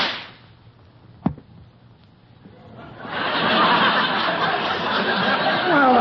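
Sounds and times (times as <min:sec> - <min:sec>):
gunshot fired at a rabbit on a rock: 0:00.0 - 0:00.4
laughter: 0:02.5 - 0:05.9.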